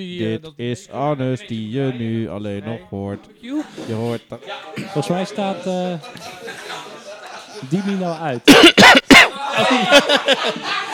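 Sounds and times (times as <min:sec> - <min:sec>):
speech: 0:00.0 - 0:06.6, 0:07.6 - 0:10.8
laughter: 0:04.7 - 0:10.9
person coughing after frikandel went down wrong: 0:08.5 - 0:09.4.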